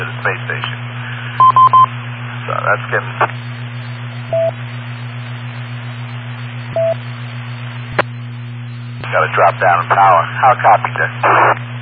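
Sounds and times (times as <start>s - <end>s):
radio beep tones: 0.0s - 11.6s
speech: 2.7s - 3.6s, 9.2s - 11.6s.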